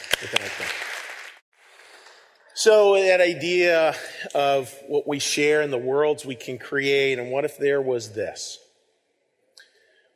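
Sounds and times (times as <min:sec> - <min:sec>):
audience applause: 0:00.0 - 0:02.0
speech: 0:00.2 - 0:00.9, 0:02.6 - 0:08.6.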